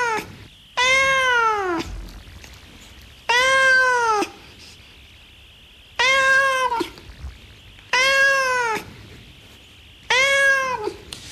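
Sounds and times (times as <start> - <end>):
cat meowing from a sound effects CD: 0.0 - 2.3, 3.3 - 4.4, 6.0 - 8.9, 10.1 - 11.1.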